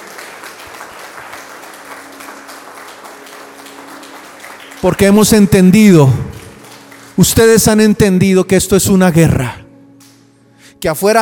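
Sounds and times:
audience applause: 0.0s - 7.8s
speech: 4.8s - 6.4s, 7.2s - 9.6s, 10.8s - 11.2s.

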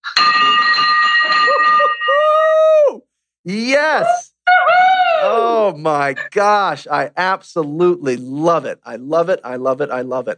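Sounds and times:
loud hand bell ringing: 0.0s - 2.4s
speech: 3.4s - 4.3s, 5.2s - 10.3s.

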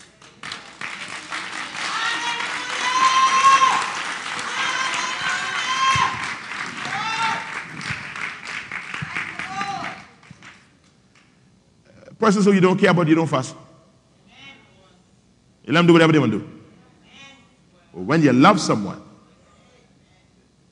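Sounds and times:
audience clapping: 0.0s - 11.4s
raised voices cheering: 1.4s - 10.2s
speech: 12.3s - 13.6s, 15.7s - 16.6s, 18.1s - 19.1s.

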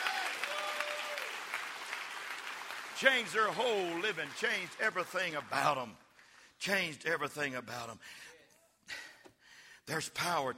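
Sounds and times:
audience clapping: 0.0s - 6.6s
speech: 3.0s - 6.0s, 6.6s - 8.3s, 9.9s - 10.5s.

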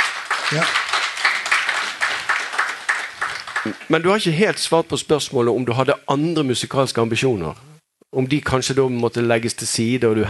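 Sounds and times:
audience applause: 0.0s - 4.0s
speech: 0.5s - 0.8s, 3.6s - 10.2s.

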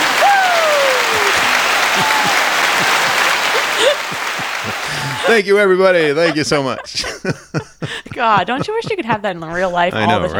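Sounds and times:
applause sound effect from a button: 0.0s - 5.3s
laughter: 0.0s - 10.3s
speech: 5.3s - 10.3s.

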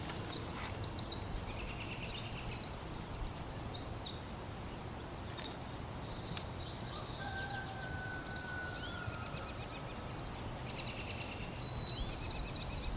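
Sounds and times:
several birds singing: 0.0s - 12.9s.

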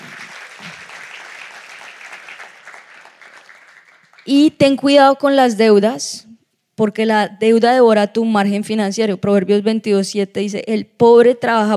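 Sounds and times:
loud applause: 0.0s - 4.3s
speech: 4.2s - 11.7s.

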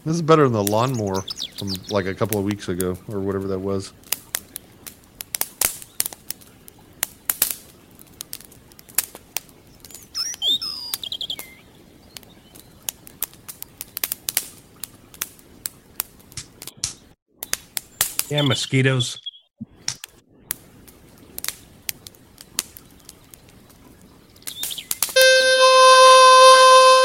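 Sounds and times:
speech: 0.0s - 4.0s, 18.3s - 19.3s
campfire crackling: 0.0s - 19.0s, 19.6s - 27.0s.

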